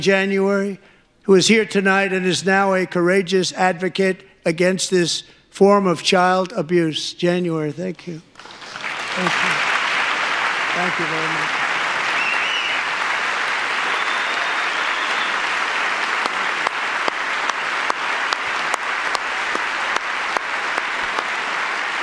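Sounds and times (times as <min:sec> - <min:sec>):
speech: 0:00.0 - 0:09.6, 0:10.8 - 0:11.6
large audience applause: 0:08.4 - 0:22.0.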